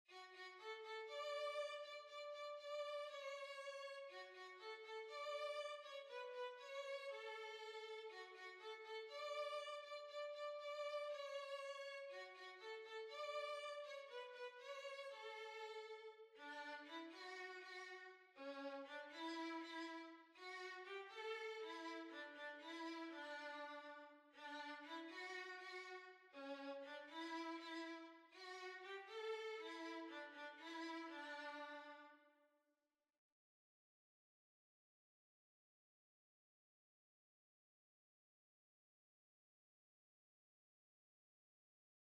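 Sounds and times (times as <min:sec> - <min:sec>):
violin: 0:00.1 - 0:32.3.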